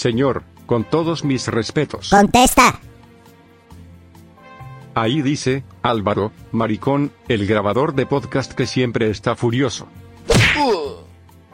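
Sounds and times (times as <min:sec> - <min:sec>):
speech: 0:00.0 - 0:02.9, 0:05.0 - 0:10.9
blow striking someone in a comedy sketch: 0:10.3 - 0:10.8.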